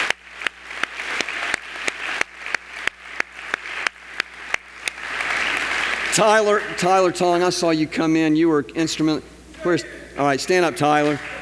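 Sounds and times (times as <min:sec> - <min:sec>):
audience applause: 0:00.0 - 0:07.1, 0:10.9 - 0:11.4
speech: 0:06.2 - 0:11.3.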